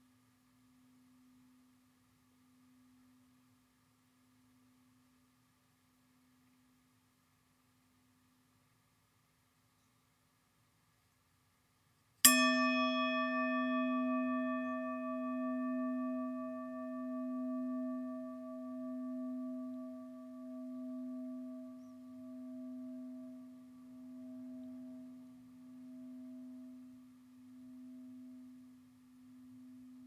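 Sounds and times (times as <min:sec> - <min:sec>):
singing bowl: 0:12.2 - 0:30.0.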